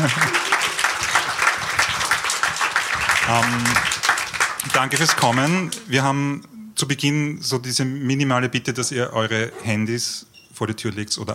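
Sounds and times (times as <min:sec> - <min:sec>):
speech: 0:00.0 - 0:00.2, 0:03.3 - 0:04.0, 0:04.6 - 0:11.3
laughter: 0:00.0 - 0:01.0
audience applause: 0:00.0 - 0:05.9.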